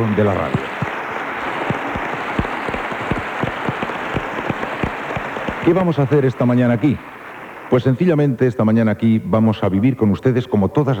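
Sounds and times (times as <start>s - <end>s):
speech: 0.0s - 0.7s, 5.6s - 7.1s, 7.7s - 10.9s
audience applause: 0.0s - 8.3s.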